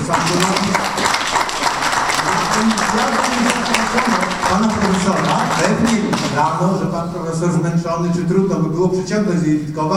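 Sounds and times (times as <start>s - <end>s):
crowd applauding: 0.0s - 6.6s
speech: 4.5s - 9.9s.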